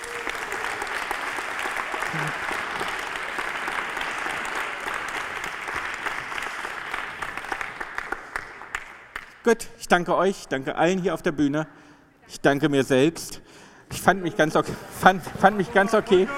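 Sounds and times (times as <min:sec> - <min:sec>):
live crowd applauding: 0:00.0 - 0:09.4, 0:15.4 - 0:16.3
speech: 0:02.1 - 0:02.5, 0:09.5 - 0:16.3.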